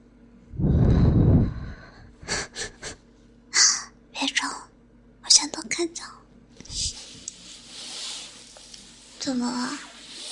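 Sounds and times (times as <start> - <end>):
deep inhale with feet held under the nose: 0.6 - 2.7, 6.8 - 9.2, 9.8 - 10.3
speech: 9.3 - 9.9.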